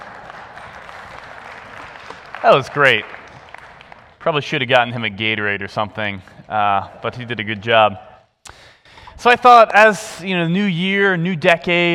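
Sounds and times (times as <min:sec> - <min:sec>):
audience applause for a reader: 0:00.0 - 0:04.4
speech: 0:02.4 - 0:03.2, 0:04.2 - 0:08.1, 0:09.2 - 0:11.9.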